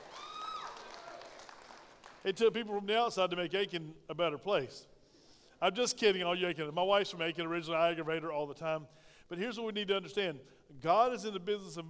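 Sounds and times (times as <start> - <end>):
audience applause: 0.0 - 2.2
speech: 2.2 - 4.9, 5.6 - 11.8.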